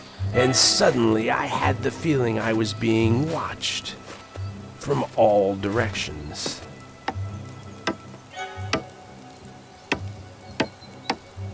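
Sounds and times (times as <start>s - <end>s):
speech: 0.3s - 4.0s, 4.8s - 6.7s
wood knocking on a tree: 6.4s - 9.0s, 9.9s - 11.3s.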